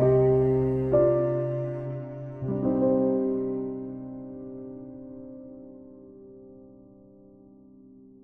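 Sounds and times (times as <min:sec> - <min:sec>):
cello playing instrumental Christmas music: 0:00.0 - 0:06.2
piano playing instrumental Christmas music: 0:00.0 - 0:08.2.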